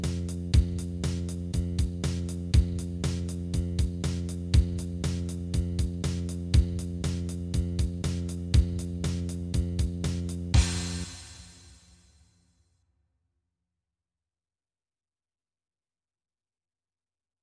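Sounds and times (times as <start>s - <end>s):
bass startup sound: 0.0s - 11.9s.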